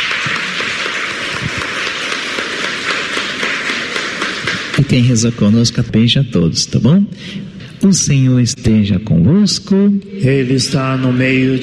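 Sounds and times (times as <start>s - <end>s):
applause for pilgrims: 0.0s - 5.8s
speech: 4.8s - 11.6s.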